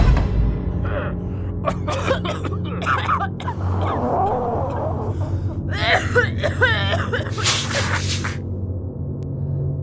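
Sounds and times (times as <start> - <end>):
hospital waiting room low hum: 0.1 - 7.2, 8.3 - 9.7
coughs in hospital waiting room: 0.9 - 8.4
gasps: 7.1 - 8.4.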